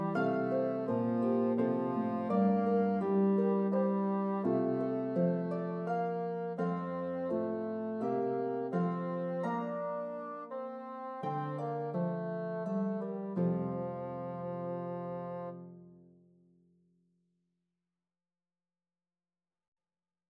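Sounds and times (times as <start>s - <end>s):
harp playing a lullaby: 0.0s - 15.7s
bassoon playing a lullaby: 0.0s - 15.8s.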